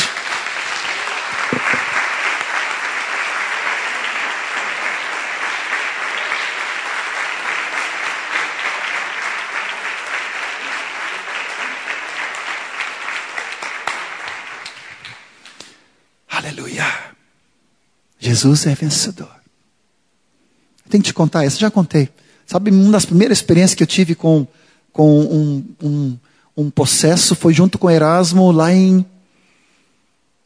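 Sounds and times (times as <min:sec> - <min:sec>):
audience applause: 0:00.0 - 0:15.7
speech: 0:18.4 - 0:19.4, 0:20.9 - 0:29.1.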